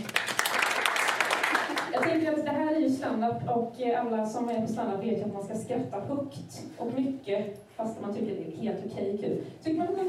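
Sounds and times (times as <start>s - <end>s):
audience applauding: 0.0s - 2.0s
speech: 2.9s - 10.0s.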